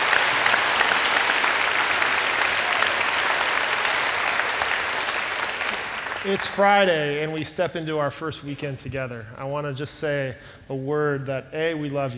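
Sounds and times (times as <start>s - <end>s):
audience applause: 0.0s - 6.8s
speech: 6.2s - 12.1s.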